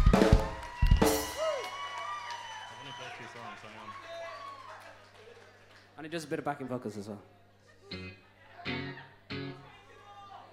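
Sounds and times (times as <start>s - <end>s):
audience applause: 0.0s - 6.5s
speech: 6.1s - 7.4s.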